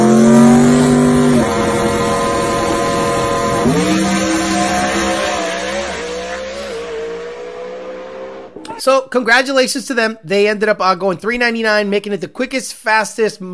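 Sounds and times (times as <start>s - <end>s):
Coyote V8 engine revving: 0.0s - 8.8s
speech: 8.8s - 13.5s.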